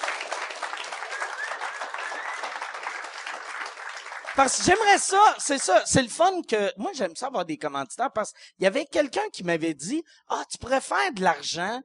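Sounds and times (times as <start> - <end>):
audience applause: 0.0 - 4.9
speech: 4.4 - 11.8.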